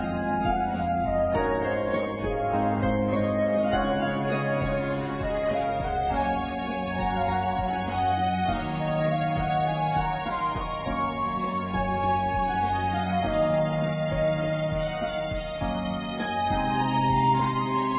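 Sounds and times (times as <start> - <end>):
background music: 0.0 - 17.9.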